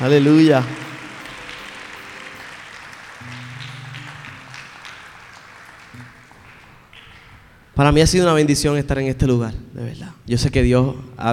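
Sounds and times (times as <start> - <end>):
speech: 0.0 - 0.8, 7.8 - 11.3
church congregation applauding the Lord: 0.0 - 7.8.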